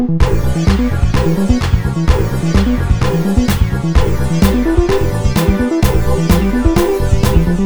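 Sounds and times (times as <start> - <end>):
EDM song: 0.1 - 7.6.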